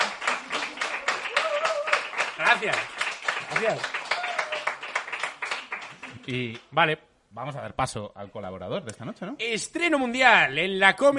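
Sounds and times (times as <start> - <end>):
small round of applause: 0.0 - 6.7
speech: 2.6 - 4.0, 6.3 - 11.1.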